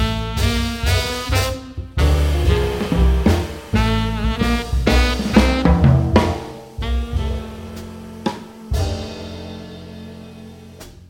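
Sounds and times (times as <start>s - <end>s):
blues drums jazz etude: 0.0s - 11.0s.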